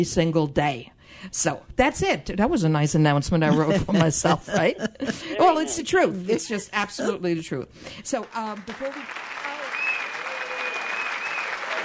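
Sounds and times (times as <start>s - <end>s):
speech: 0.0s - 9.4s
laughter: 3.5s - 7.1s
canned applause from a crowd triggered by button: 8.2s - 11.8s
faint tonal whistle: 9.7s - 11.6s.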